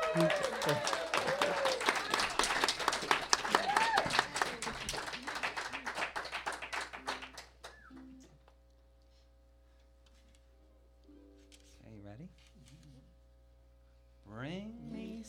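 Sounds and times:
audience applause welcoming a performer and ukulele group members: 0.0 - 7.9.

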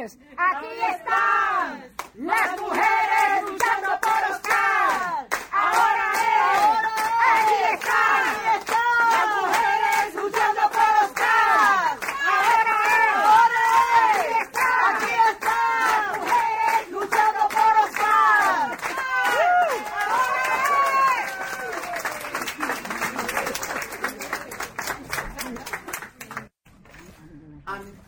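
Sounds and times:
crowd chanting at a protest: 0.5 - 22.0
scattered clapping and cheering: 1.9 - 26.6.

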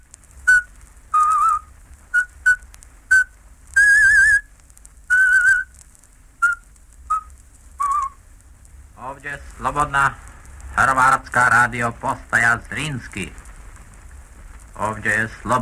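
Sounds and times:
person whistling a traditional folk song: 0.5 - 4.5, 5.1 - 5.7, 6.4 - 8.2
speech: 9.2 - 10.2, 10.8 - 13.4, 14.8 - 15.5.

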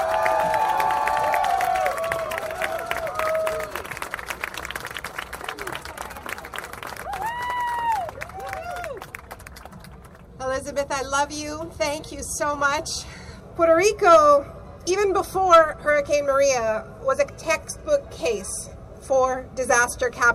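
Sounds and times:
audience applause and cheering: 0.0 - 10.2
speech: 10.8 - 20.3.

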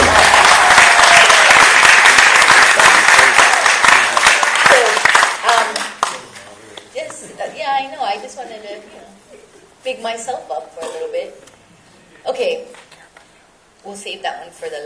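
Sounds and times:
audience applause: 0.0 - 6.3
speech: 10.0 - 11.5, 12.2 - 12.8, 13.8 - 14.8.

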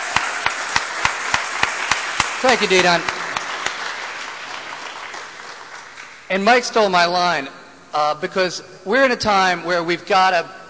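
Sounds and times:
crowd clapping: 0.0 - 6.3
speech: 2.4 - 3.2, 6.3 - 10.6.

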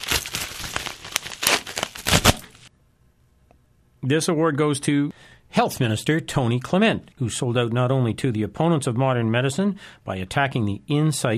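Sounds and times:
paper envelope crinkling and tearing open at an awards presentation: 0.0 - 2.7
speech: 4.0 - 11.3.

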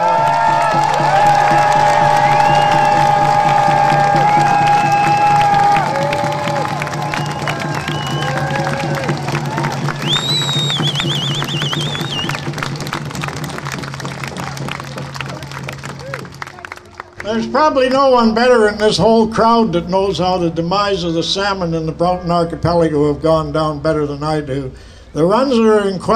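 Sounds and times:
audience applause: 0.0 - 18.5
high whistles: 2.1 - 8.9, 9.9 - 12.5
speech: 17.5 - 26.1.

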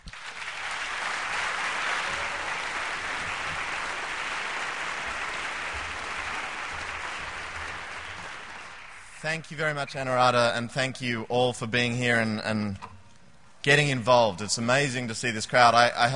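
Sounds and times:
audience applause: 0.0 - 9.2
speech: 9.2 - 12.9, 13.6 - 16.1.

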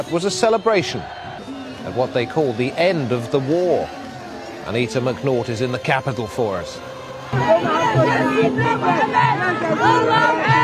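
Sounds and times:
speech: 0.0 - 4.0, 4.6 - 10.6
festive crowd: 0.0 - 10.6.

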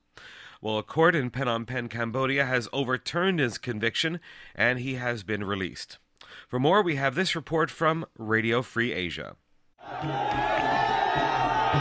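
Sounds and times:
speech: 0.6 - 10.6
hundreds of supporters cheering an activist's release from Prasar prison: 9.8 - 11.7.

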